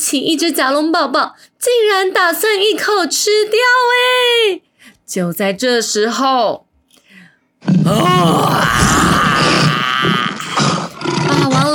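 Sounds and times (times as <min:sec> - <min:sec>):
speech: 0:00.1 - 0:06.7, 0:07.6 - 0:08.9
tyrannosaurus roar sound effect: 0:07.6 - 0:11.7.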